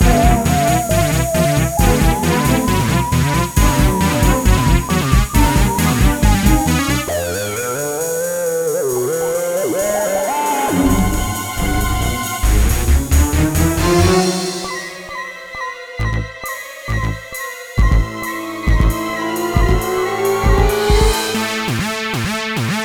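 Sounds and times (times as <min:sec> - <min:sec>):
flying imps: 0:00.0 - 0:22.7.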